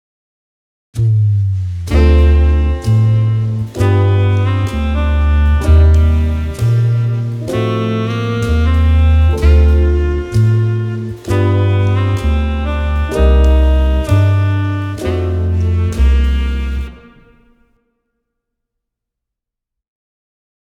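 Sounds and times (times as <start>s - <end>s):
jazz music: 1.6s - 17.7s.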